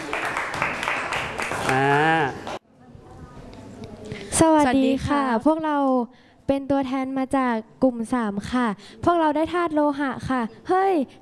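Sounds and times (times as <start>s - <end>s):
classroom applause: 0.0s - 2.6s
speech: 4.4s - 11.1s.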